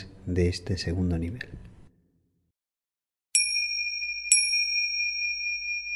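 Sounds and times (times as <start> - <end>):
speech: 0.2 - 1.7
Mahayoga yoga practice timer chime: 3.4 - 5.9.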